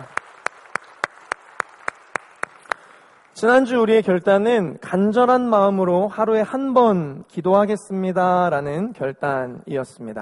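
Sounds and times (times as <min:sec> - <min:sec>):
audience applause: 0:00.0 - 0:03.4
speech: 0:03.4 - 0:10.2.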